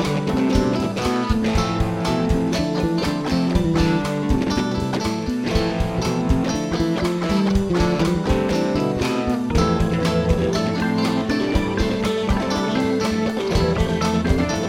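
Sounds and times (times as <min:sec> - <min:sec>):
music loop in A minor: 0:00.0 - 0:14.6.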